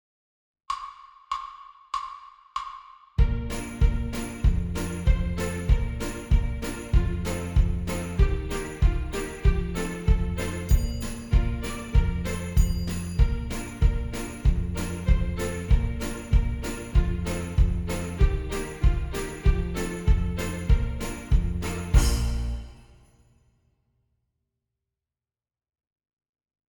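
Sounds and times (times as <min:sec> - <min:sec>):
horns in fifths: 0:03.3 - 0:22.8.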